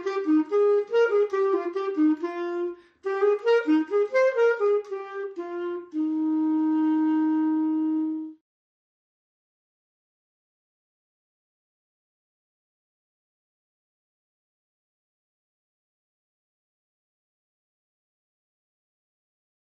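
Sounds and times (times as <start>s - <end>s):
clarinet: 0.0s - 8.4s.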